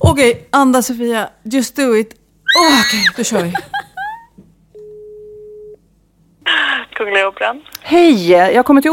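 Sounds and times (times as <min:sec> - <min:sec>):
speech: 0:00.1 - 0:03.8, 0:07.3 - 0:08.9
laughter: 0:02.8 - 0:04.3
telephone ringing tone on outgoing call: 0:04.8 - 0:05.8.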